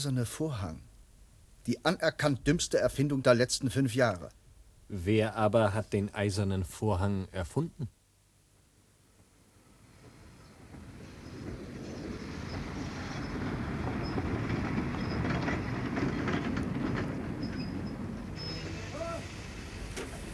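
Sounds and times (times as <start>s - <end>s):
speech: 0.0s - 0.9s, 1.6s - 8.0s
express train running on rails: 9.9s - 20.3s.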